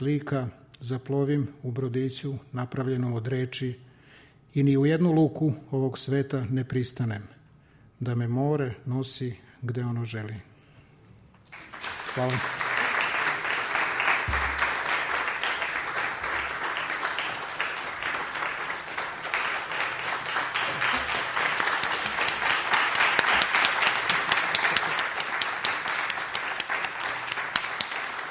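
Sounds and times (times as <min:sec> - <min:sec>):
speech: 0:00.0 - 0:03.9, 0:04.5 - 0:07.4, 0:08.0 - 0:10.5, 0:12.2 - 0:12.6
live audience applause at a poetry reading: 0:11.5 - 0:28.3.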